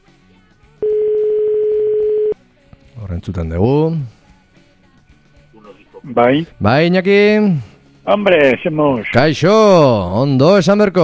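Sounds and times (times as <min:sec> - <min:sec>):
telephone line tone while placing a call: 0:00.8 - 0:02.4
speech: 0:03.2 - 0:04.2, 0:06.1 - 0:11.0.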